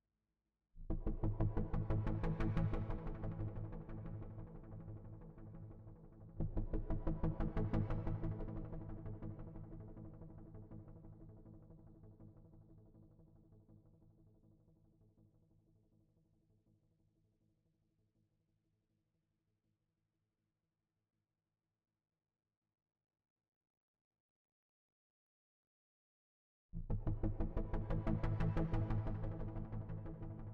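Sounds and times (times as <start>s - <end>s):
bass: 0.8s - 12.1s, 26.8s - 30.5s.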